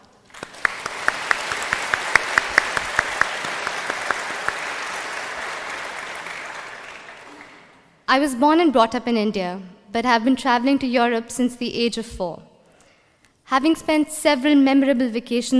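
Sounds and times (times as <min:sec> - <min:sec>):
audience applause: 0:00.3 - 0:07.9
speech: 0:08.1 - 0:12.5, 0:13.5 - 0:15.5.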